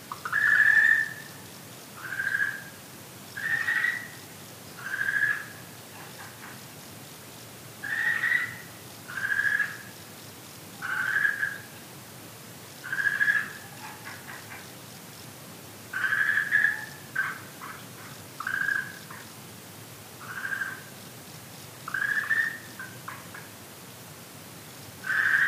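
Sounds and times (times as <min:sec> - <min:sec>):
hiss: 0:00.0 - 0:25.4
frog calls: 0:00.1 - 0:01.4, 0:02.0 - 0:02.8, 0:03.4 - 0:06.6, 0:07.8 - 0:10.0, 0:10.8 - 0:11.8, 0:12.8 - 0:14.9, 0:15.9 - 0:19.4, 0:20.2 - 0:21.0, 0:21.8 - 0:23.6, 0:25.0 - 0:25.4.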